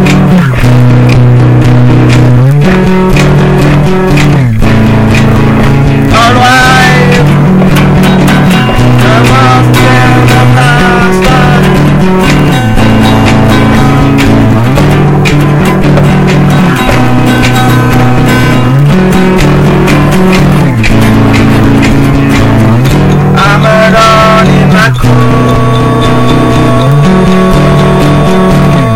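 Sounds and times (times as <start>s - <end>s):
acoustic bass: 0.0s - 28.9s.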